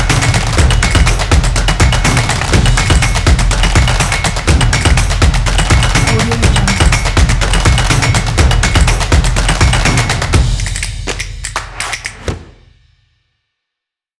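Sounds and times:
drumming: 0.0s - 12.9s.

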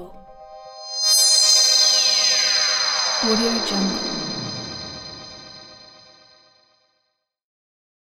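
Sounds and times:
harmonic sweeps: 0.2s - 6.1s.

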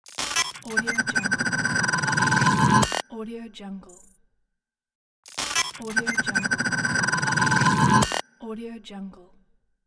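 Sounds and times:
glitchy logo sound: 0.1s - 3.0s, 5.5s - 8.2s.

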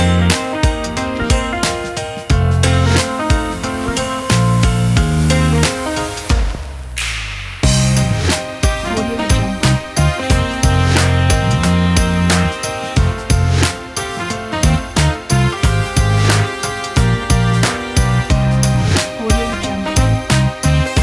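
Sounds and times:
pop jazz rock music: 0.0s - 21.0s.

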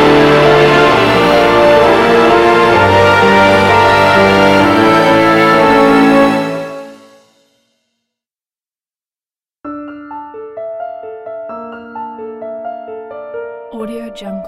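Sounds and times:
orchestra: 0.0s - 7.4s
beautiful piano: 0.0s - 7.7s, 9.6s - 14.4s.

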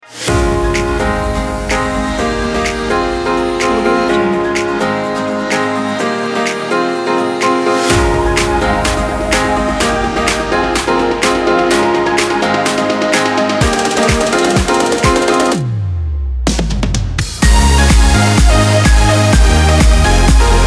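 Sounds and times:
dance drum kit: 0.3s - 15.7s, 16.5s - 20.6s.

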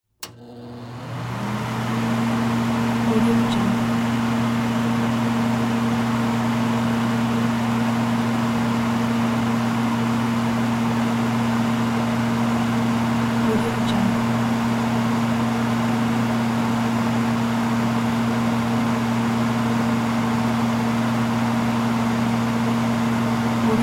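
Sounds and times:
hood vent fan at two speeds: 0.2s - 23.8s.

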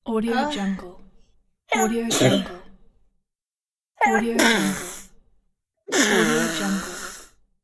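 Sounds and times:
child sneezing: 1.8s - 2.6s, 4.0s - 5.1s, 5.9s - 7.2s.

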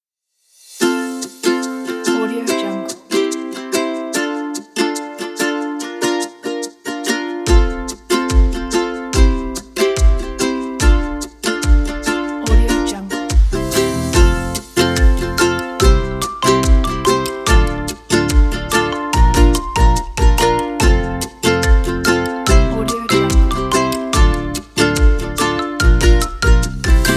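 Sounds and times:
ukulele: 0.7s - 27.1s.

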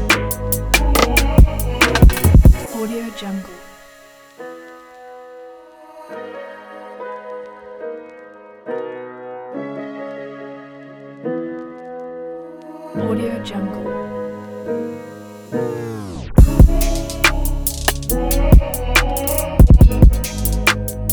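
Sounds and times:
sexy erotic soul trap beat: 0.0s - 3.0s, 16.4s - 21.1s.

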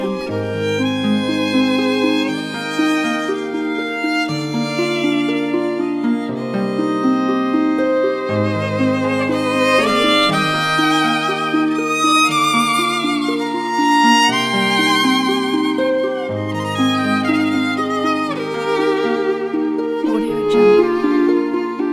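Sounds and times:
harp: 0.0s - 21.9s
violins: 0.0s - 21.9s.

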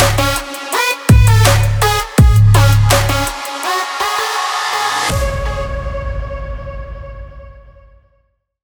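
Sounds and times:
trap beat: 0.0s - 4.9s.

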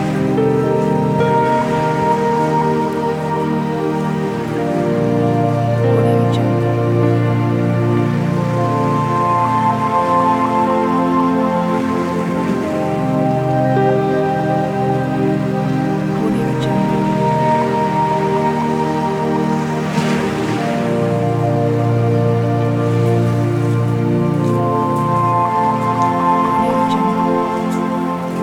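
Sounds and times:
relaxing meditation piano music: 0.0s - 28.4s
waves: 0.0s - 28.4s.

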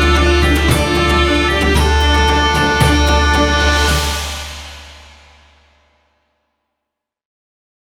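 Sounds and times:
European ethnic folk music: 0.0s - 5.5s.

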